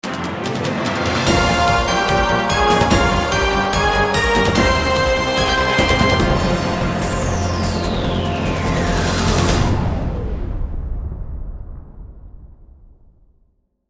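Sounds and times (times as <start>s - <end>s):
opening titles music: 0.0s - 10.5s.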